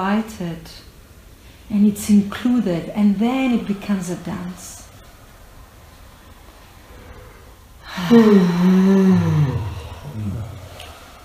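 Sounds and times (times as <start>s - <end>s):
speech: 0.0s - 0.9s, 1.7s - 4.8s, 8.0s - 9.4s
loud deep breathing exercise: 5.0s - 11.2s.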